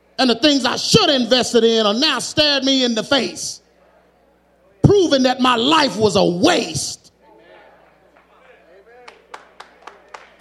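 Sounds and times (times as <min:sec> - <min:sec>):
speech: 0:00.2 - 0:03.6, 0:04.9 - 0:07.0
audience clapping: 0:07.8 - 0:10.3.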